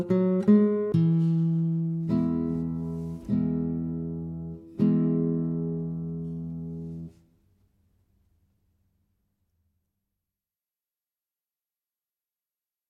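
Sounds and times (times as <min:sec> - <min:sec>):
guitar minuet: 0:00.0 - 0:07.2.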